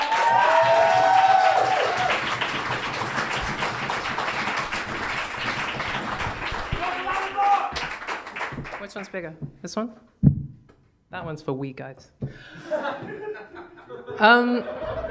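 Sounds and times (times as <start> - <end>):
audience round of applause: 0.0 - 9.2
speech: 9.0 - 10.3, 11.2 - 14.9
laughter: 12.4 - 15.0.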